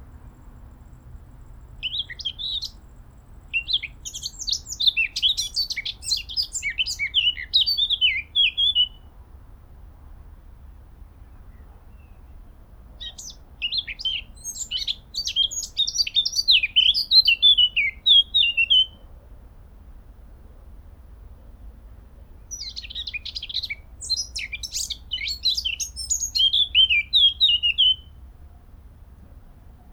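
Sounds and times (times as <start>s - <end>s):
Eurasian blackcap warbling song: 1.8s - 2.8s, 3.5s - 9.0s, 13.0s - 19.0s, 22.5s - 28.1s.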